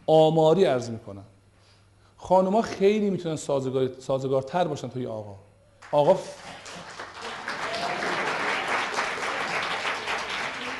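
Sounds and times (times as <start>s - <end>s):
speech: 0.1s - 1.4s, 2.2s - 6.6s
men in a lecture audience clapping: 5.8s - 10.7s.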